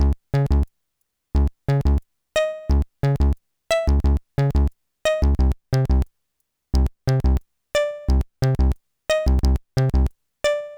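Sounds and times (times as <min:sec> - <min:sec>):
bass: 0:00.0 - 0:00.7, 0:01.4 - 0:02.0, 0:02.6 - 0:06.1, 0:06.8 - 0:07.4, 0:08.0 - 0:10.1.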